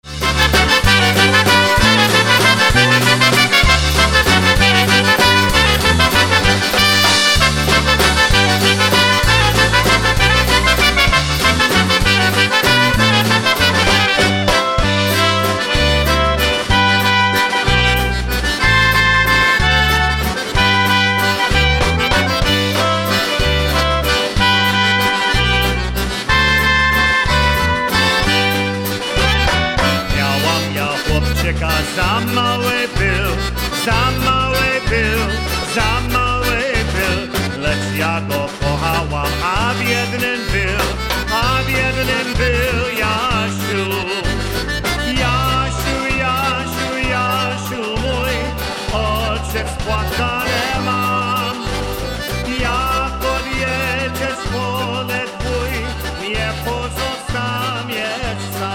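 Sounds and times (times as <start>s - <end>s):
Polish oberek folk dance music: 0.0s - 58.7s.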